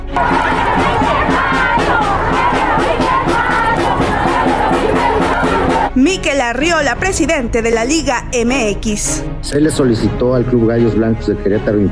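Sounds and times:
protest crowd chanting and shouting at women's day march: 0.0s - 5.9s
speech: 6.0s - 11.9s.

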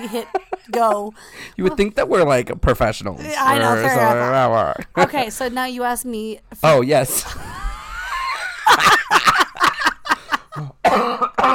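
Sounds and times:
laughter: 0.0s - 1.9s, 7.1s - 10.7s
speech: 0.0s - 7.6s
harsh raspy coughs: 10.6s - 11.5s.

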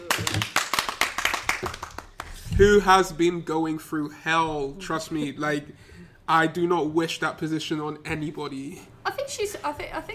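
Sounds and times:
people clapping: 0.0s - 2.5s
speech: 2.6s - 10.1s.

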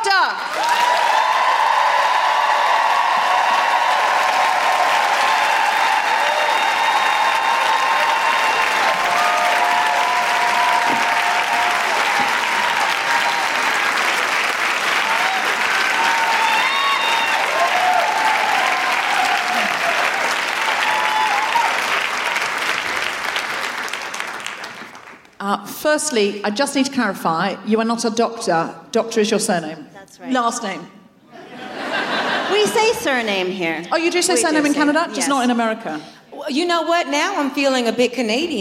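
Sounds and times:
crowd whooping and cheering: 0.4s - 23.2s
crowd applause: 0.4s - 25.4s, 31.5s - 33.0s
speech: 26.0s - 31.0s, 32.6s - 38.5s
laughter: 31.3s - 35.7s.

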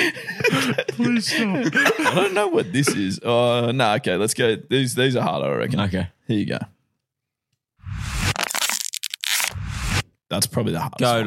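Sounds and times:
laughter: 0.0s - 3.2s
speech: 0.1s - 6.7s, 10.3s - 11.2s
plastic water bottle being scrunched up: 8.4s - 9.6s.

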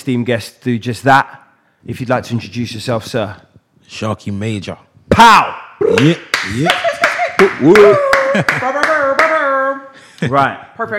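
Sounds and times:
speech: 0.0s - 9.4s, 10.2s - 10.9s
hand clapping: 5.8s - 9.5s.

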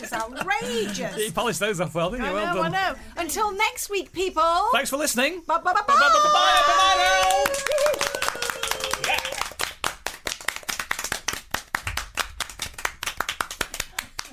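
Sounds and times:
speech: 0.1s - 8.2s
hand clapping: 6.5s - 14.3s.

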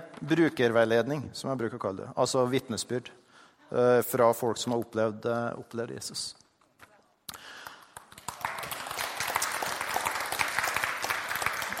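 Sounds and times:
speech: 0.2s - 6.4s
audience applause: 7.7s - 11.7s.

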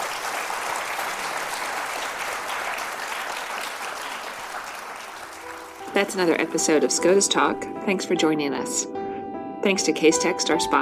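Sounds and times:
live audience applause at the National Constitution Center: 0.0s - 7.0s
speech: 6.0s - 9.0s, 9.6s - 10.7s.

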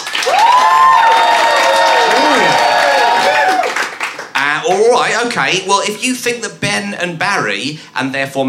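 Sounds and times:
crowd cheering and whooping: 0.0s - 4.0s
crowd applauding: 0.0s - 4.9s
speech: 4.7s - 8.4s.

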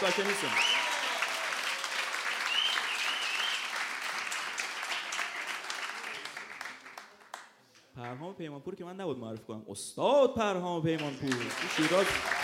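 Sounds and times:
speech: 0.0s - 0.7s, 8.1s - 12.4s
audience clapping for performers from Bushehr: 0.0s - 8.2s, 10.9s - 12.4s.

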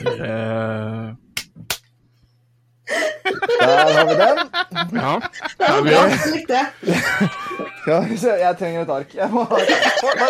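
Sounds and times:
speech: 0.2s - 0.8s, 3.8s - 10.2s
hand clapping: 1.4s - 1.9s
laughter: 2.9s - 8.3s, 9.2s - 10.2s.

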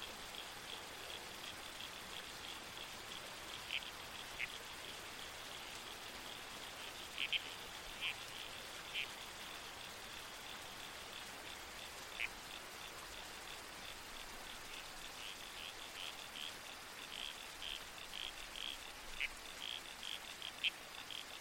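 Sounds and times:
creek water: 0.0s - 21.4s
wind: 0.0s - 21.4s
red-crowned toadlet squelchy calls: 7.2s - 8.2s.

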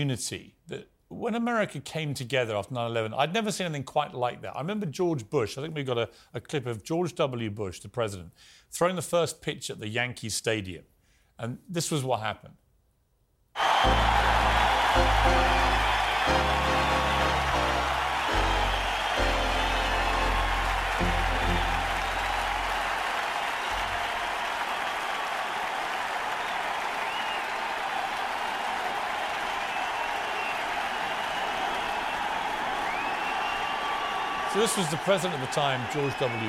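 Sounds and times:
speech: 0.0s - 12.6s, 13.6s - 14.1s, 15.0s - 16.7s, 34.6s - 36.4s
Yankee Stadium crowd cheering and applauding: 13.6s - 36.4s.

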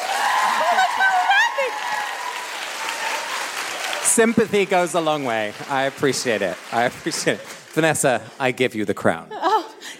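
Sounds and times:
clapping: 0.0s - 8.0s
speech: 4.2s - 9.9s.

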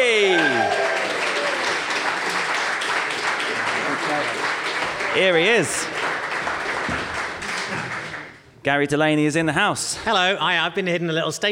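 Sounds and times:
audience applause welcoming a comedian guest on stage at a live show: 0.0s - 8.4s
speech: 5.2s - 6.1s, 8.6s - 11.5s.

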